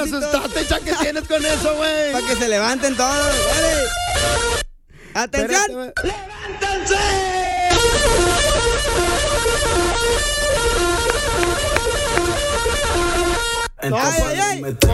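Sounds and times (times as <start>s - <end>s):
speech: 0.0s - 4.6s, 5.2s - 10.8s, 13.8s - 14.9s
blaring horn-like alarm: 0.0s - 4.7s, 7.7s - 13.8s.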